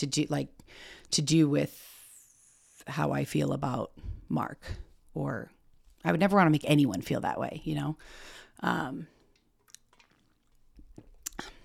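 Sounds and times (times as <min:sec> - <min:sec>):
speech: 0:00.0 - 0:01.9, 0:02.9 - 0:09.1
person drinking water: 0:09.0 - 0:11.6
small mouth clicks: 0:09.6 - 0:11.6.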